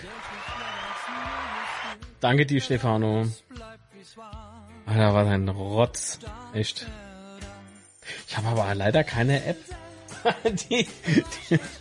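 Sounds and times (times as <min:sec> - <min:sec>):
canned applause sound effect from Stream Deck: 0:00.0 - 0:02.0
speech: 0:02.2 - 0:03.4, 0:04.9 - 0:07.1, 0:08.1 - 0:11.8
laughter: 0:10.1 - 0:11.8.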